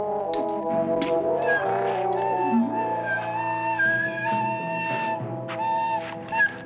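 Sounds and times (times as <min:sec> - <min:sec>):
flute: 0:00.0 - 0:06.6.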